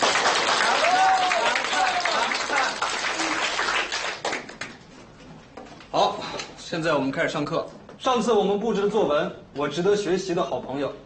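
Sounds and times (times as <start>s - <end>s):
classroom applause: 0.0s - 4.8s
speech: 6.7s - 11.0s.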